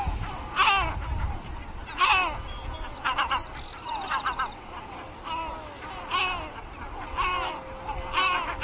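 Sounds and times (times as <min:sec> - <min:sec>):
great black-backed gulls crying: 0:00.0 - 0:08.6.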